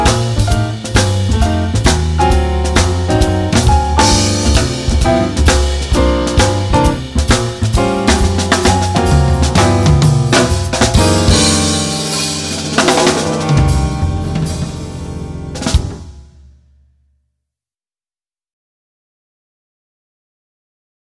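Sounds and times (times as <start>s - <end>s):
jazz blues backing without baritone sax soloist: 0.0s - 16.6s.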